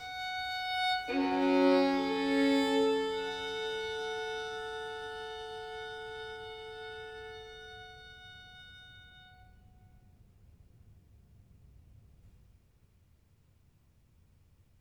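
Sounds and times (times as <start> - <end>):
solo violin sonata in G minor: 0.0 - 10.0.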